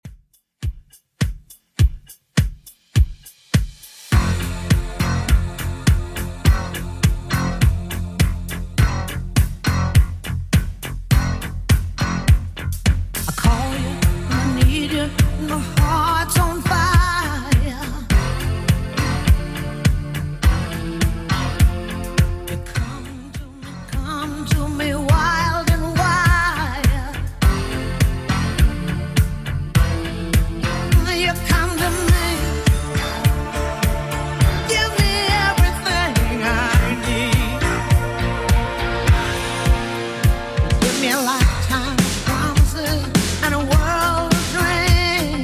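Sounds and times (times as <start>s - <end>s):
80s drum beat at 103 bpm: 0.0s - 22.8s, 24.6s - 45.4s.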